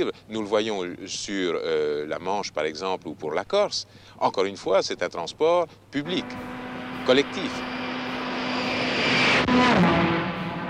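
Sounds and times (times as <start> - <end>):
speech: 0.0 - 7.8
experimental aerotrain running at high speed with propeller-like engine roar: 6.0 - 10.6.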